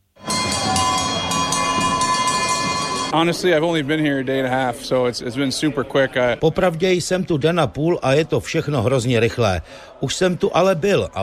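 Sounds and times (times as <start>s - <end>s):
cowbells ringing in stadium: 0.2s - 3.2s
speech: 3.1s - 11.2s.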